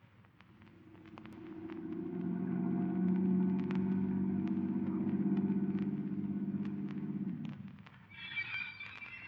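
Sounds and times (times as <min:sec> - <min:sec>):
car engine driving: 0:00.9 - 0:07.9.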